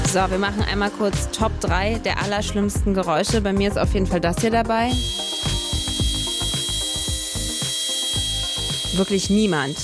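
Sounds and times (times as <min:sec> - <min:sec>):
speech: 0:00.1 - 0:05.2, 0:09.0 - 0:09.8
dentist's drill working on teeth: 0:04.8 - 0:09.8.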